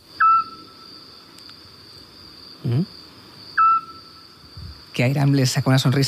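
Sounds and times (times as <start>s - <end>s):
faint hum: 0.0s - 6.0s
Eurasian scops owl calling at night: 0.2s - 0.9s, 3.6s - 4.2s
speech: 2.6s - 3.0s, 5.0s - 6.0s.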